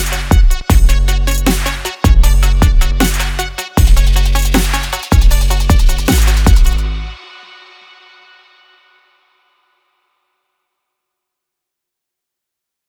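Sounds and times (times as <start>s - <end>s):
sport action music: 0.0s - 8.1s.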